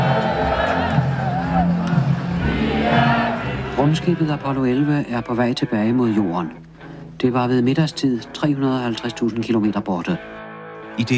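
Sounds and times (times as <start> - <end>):
celebrating street crowd cheering: 0.0 - 3.8
speech: 3.9 - 10.4, 11.0 - 11.1.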